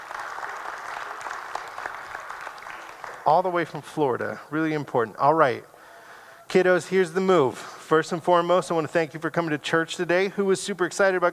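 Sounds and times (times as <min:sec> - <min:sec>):
audience applause: 0:00.0 - 0:03.6
speech: 0:03.2 - 0:05.7, 0:06.5 - 0:11.3.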